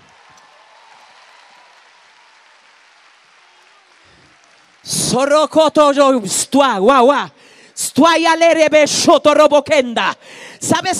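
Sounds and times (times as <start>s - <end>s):
audience applauding: 0.0s - 5.8s
speech: 4.8s - 10.9s.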